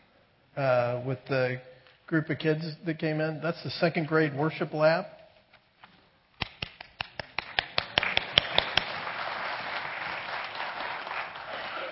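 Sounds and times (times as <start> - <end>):
speech: 0.6 - 5.2
audience applause: 7.4 - 11.9.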